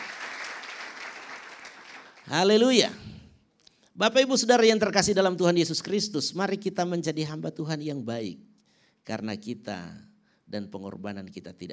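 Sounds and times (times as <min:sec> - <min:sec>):
audience applause: 0:00.0 - 0:02.3
speech: 0:02.3 - 0:03.1, 0:04.0 - 0:11.7.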